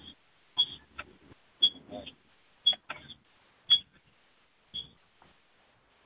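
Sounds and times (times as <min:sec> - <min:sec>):
electronic timer beeping: 0:00.0 - 0:00.9, 0:01.6 - 0:04.0, 0:04.7 - 0:05.0.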